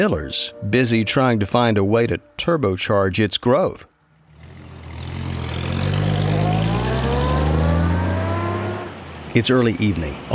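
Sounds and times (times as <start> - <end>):
speech: 0.0 - 3.9, 9.3 - 10.3
car engine accelerating through downtown Milwaukee: 4.1 - 9.4.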